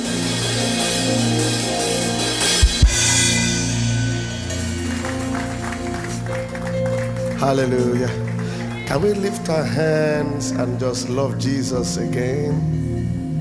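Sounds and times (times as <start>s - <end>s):
sustained low musical tones: 0.0s - 13.4s
crowd applauding: 3.8s - 9.8s
speech: 7.4s - 8.3s, 8.9s - 12.9s.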